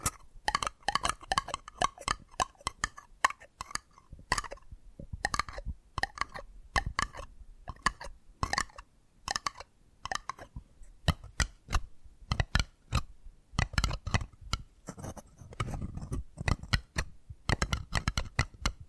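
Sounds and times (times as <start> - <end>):
tapping triggers: 0.0 - 10.5, 11.1 - 18.8
faint scratchy rustles: 14.8 - 16.5.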